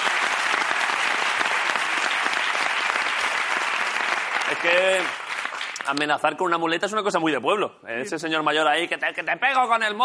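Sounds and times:
audience applause: 0.0s - 6.0s
speech: 4.5s - 5.2s, 5.8s - 10.0s.

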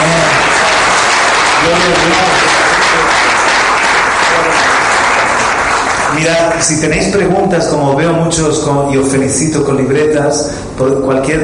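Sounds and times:
audience applause: 0.0s - 6.8s
speech: 1.7s - 2.4s, 6.2s - 11.4s.

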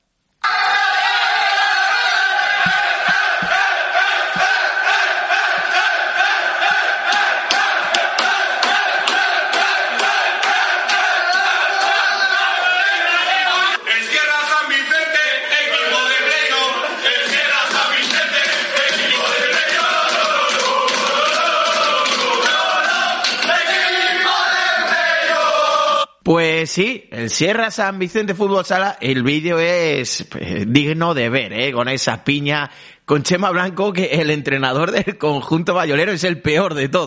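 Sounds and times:
futsal team chanting and cheering in locker room: 0.4s - 26.1s
speech: 26.8s - 37.0s.

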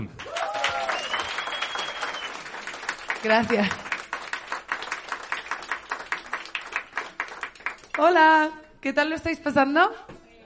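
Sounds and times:
audience applause: 0.0s - 8.0s
speech: 3.2s - 3.8s, 8.0s - 10.1s.

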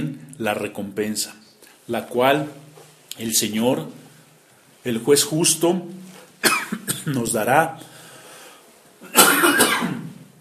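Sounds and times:
speech: 0.0s - 4.0s, 4.8s - 6.1s, 7.0s - 7.9s
harsh cough from a dry throat: 6.4s - 7.2s, 9.0s - 10.2s.

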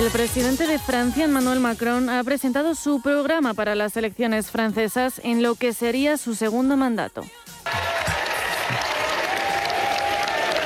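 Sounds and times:
speech: 0.0s - 7.5s
crowd applause: 7.7s - 10.6s.

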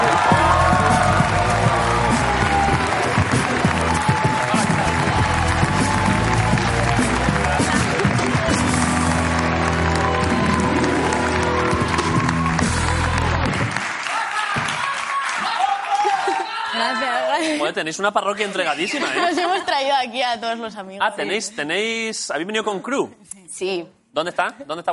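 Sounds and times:
large studio audience applauding and cheering: 0.0s - 17.4s
lively band music: 0.1s - 13.7s
laughter: 15.4s - 17.7s, 18.7s - 19.8s
speech: 17.8s - 24.9s.

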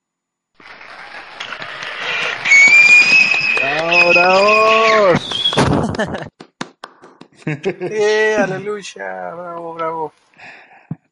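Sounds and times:
applause: 0.6s - 7.6s
laughter: 0.8s - 6.4s, 7.3s - 9.8s
sharp high whistle: 1.4s - 5.7s
speech: 4.2s - 4.6s, 6.0s - 6.3s, 7.5s - 10.6s.

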